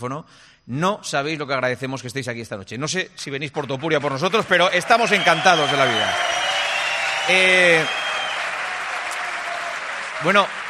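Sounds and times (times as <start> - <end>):
speech: 0.0 - 6.5, 7.2 - 8.0, 10.2 - 10.6
theatre audience applause: 3.6 - 10.6.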